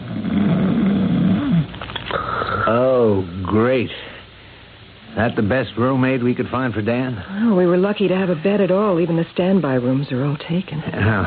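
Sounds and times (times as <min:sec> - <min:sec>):
large man snoring loudly: 0:00.0 - 0:02.9
speech: 0:02.7 - 0:04.0, 0:05.2 - 0:11.2.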